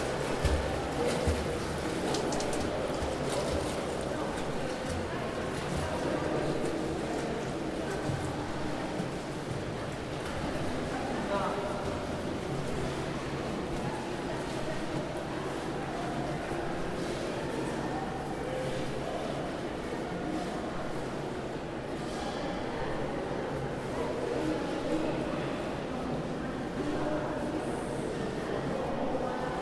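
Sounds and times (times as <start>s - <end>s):
indoor swimming pool ambience: 0.0s - 29.5s.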